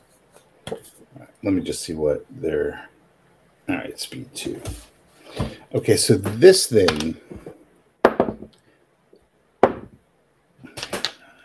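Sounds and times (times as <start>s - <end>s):
speech: 0.8s - 2.9s, 3.7s - 7.5s
heavy dice thunking on a table: 6.9s - 7.1s, 8.1s - 8.5s, 9.6s - 10.0s, 10.7s - 11.2s.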